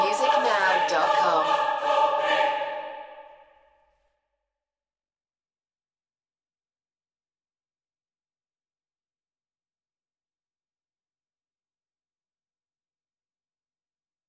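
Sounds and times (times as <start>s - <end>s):
choir singing: 0.0s - 3.9s.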